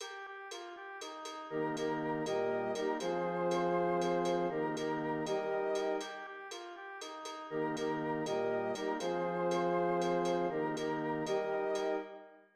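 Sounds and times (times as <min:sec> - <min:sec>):
full ensemble playing: 0:01.5 - 0:06.1, 0:07.5 - 0:12.1.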